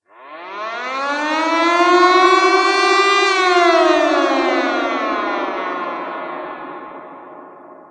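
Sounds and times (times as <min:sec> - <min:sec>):
siren: 0:00.0 - 0:07.8.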